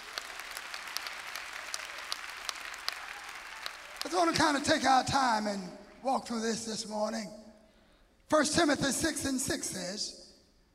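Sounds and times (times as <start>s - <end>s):
audience clapping hands: 0.0s - 6.0s
speech: 4.0s - 7.4s, 8.3s - 10.2s.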